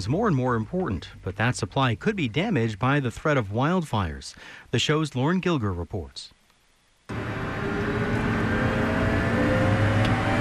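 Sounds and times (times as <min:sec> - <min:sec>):
speech: 0:00.0 - 0:06.4
helicopter flying over the Mogollon Rim: 0:07.1 - 0:10.3.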